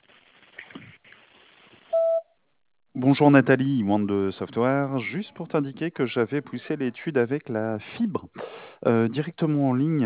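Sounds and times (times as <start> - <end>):
answering machine beep: 1.9 - 2.2
speech: 3.0 - 10.0.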